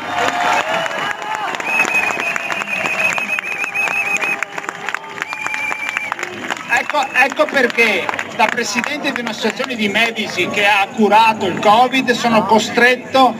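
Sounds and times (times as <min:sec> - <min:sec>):
applause: 0:00.0 - 0:10.6
speech: 0:07.0 - 0:13.3.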